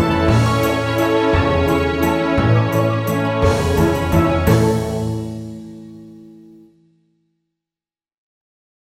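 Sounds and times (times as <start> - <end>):
waltz music: 0.0 - 6.7.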